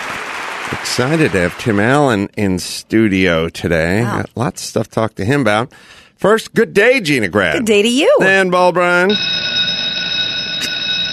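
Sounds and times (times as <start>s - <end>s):
speech: 0.7s - 9.4s
school bell ringing: 9.1s - 11.1s.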